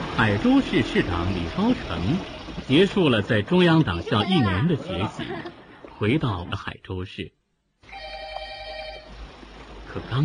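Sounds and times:
speech: 0.2 - 8.1, 9.9 - 10.2
laughter: 3.5 - 5.8
telephone ringing: 7.8 - 9.1.

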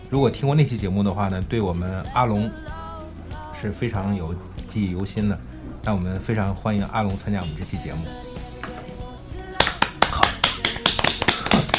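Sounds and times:
speech: 0.1 - 2.8, 3.6 - 8.3
applause: 9.6 - 11.7.

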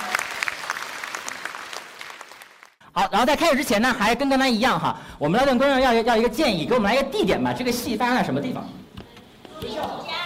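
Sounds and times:
crowd clapping: 0.0 - 2.8
speech: 3.0 - 8.8.

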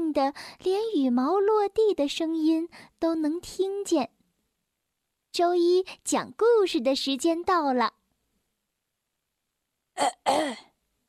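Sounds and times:
speech: 0.2 - 4.2, 5.3 - 8.0, 10.0 - 10.7
man clearing throat: 10.0 - 10.7.

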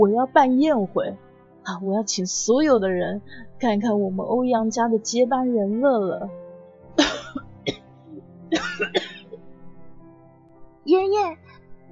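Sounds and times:
speech: 0.0 - 6.4, 10.9 - 11.4
old man coughing: 7.0 - 7.8, 8.5 - 9.4.

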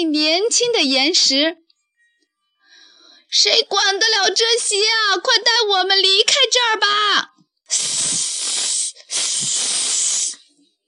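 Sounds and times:
speech: 0.0 - 1.6, 3.3 - 8.3, 9.1 - 10.2
steam hissing from lava meeting seawater: 7.7 - 10.5.

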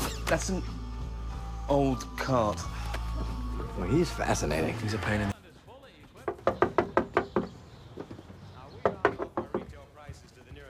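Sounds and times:
speech: 0.3 - 0.8, 1.7 - 5.3
knocking on a door: 6.2 - 9.8.

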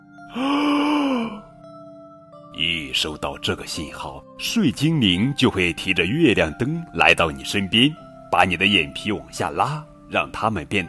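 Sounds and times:
big yawn: 0.3 - 1.5
speech: 0.4 - 0.6, 2.6 - 10.8.

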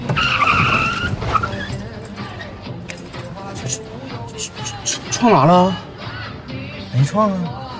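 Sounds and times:
car tires screeching while braking: 0.0 - 2.7
speech: 5.2 - 5.9, 7.0 - 7.7.

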